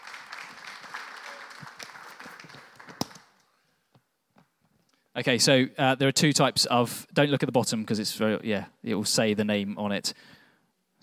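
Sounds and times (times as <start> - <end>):
crowd clapping: 0.0 - 3.4
speech: 5.2 - 10.4.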